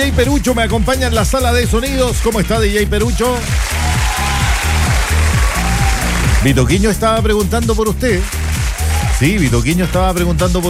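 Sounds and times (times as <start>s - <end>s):
speech: 0.1s - 4.1s, 6.4s - 8.4s, 9.1s - 10.6s
audience applause: 3.4s - 6.7s, 8.2s - 9.4s.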